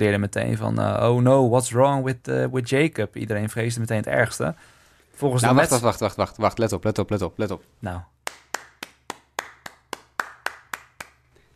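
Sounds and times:
speech: 0.0s - 8.1s
hand clapping: 8.2s - 11.4s.

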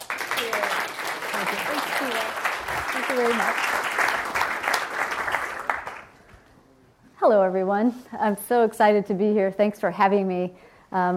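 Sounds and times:
audience applause welcoming a speaker at a talk on architecture and creativity: 0.0s - 6.2s
speech: 3.2s - 3.7s, 7.2s - 11.1s.

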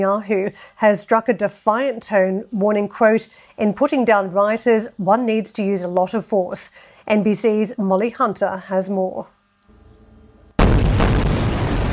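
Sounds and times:
speech: 0.0s - 9.4s
Israeli air strike explosions over the Gaza Strip: 10.6s - 11.9s.

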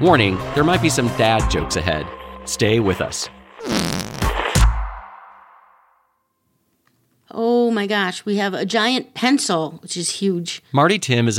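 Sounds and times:
speech: 0.0s - 4.0s, 7.3s - 11.3s
whoopee cushion fart noise: 3.6s - 4.7s.

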